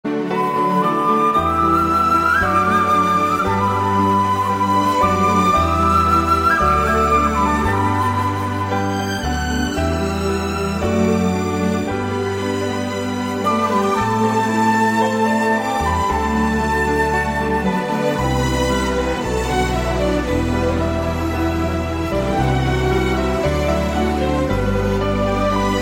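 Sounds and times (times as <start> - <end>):
Chinese flute: 0.0 - 25.8.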